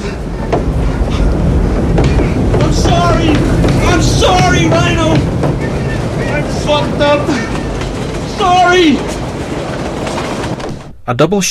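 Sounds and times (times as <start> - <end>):
train departing with rail cars rumbling: 0.0 - 11.0
voices shouting over train noise: 1.1 - 9.5
speech: 8.7 - 9.1, 11.1 - 11.4.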